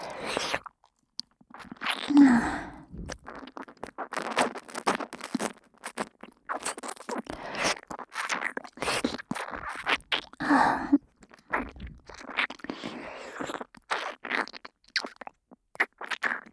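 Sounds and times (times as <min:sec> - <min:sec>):
ASMR ear licking sounds: 0:01.5 - 0:16.5
breathy sighs: 0:02.1 - 0:03.2, 0:10.4 - 0:11.0.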